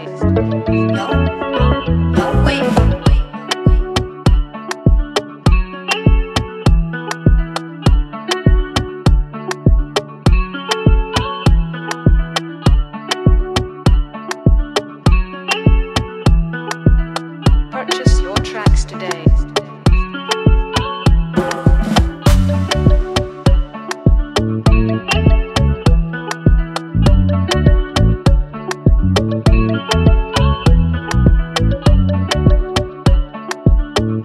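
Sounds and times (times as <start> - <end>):
beat: 0.3 - 34.2.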